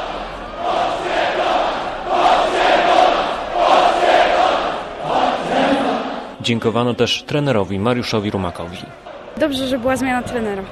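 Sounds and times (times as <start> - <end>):
Lech football supporters chanting and cheering on Plac Wolności: 0.0 - 6.4
speech: 6.4 - 10.7.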